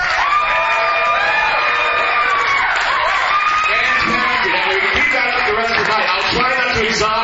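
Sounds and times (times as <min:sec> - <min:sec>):
live audience in Portland, Oregon cheering and whooping: 0:00.0 - 0:07.1
live audience clapping: 0:01.3 - 0:07.0.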